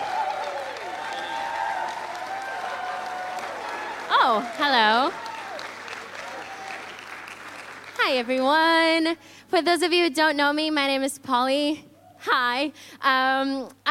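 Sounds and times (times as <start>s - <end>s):
audience applause: 0.0s - 8.0s
speech: 4.3s - 5.2s, 8.1s - 13.8s.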